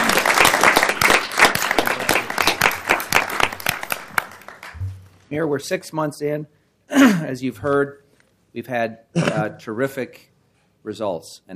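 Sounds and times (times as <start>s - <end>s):
applause: 0.0s - 4.8s
speech: 5.3s - 11.5s.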